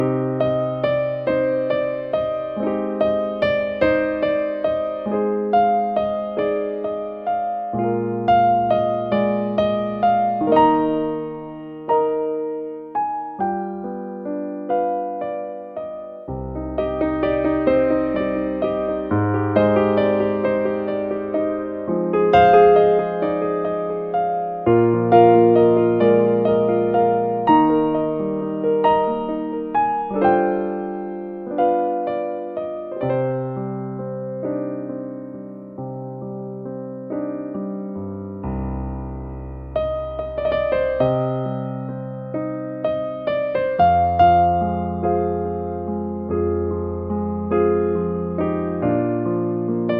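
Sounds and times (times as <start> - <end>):
piano: 0.0 - 49.9.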